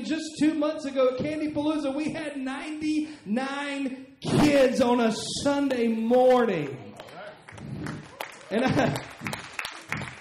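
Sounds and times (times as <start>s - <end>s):
speech: 0.0s - 6.8s, 8.5s - 9.2s
audience clapping: 5.7s - 10.1s.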